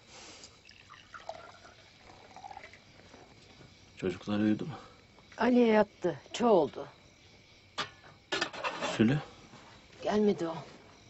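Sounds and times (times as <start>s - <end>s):
tea being poured from a teapot: 0.5s - 3.3s
speech: 4.0s - 7.0s, 9.0s - 9.3s, 10.0s - 10.7s.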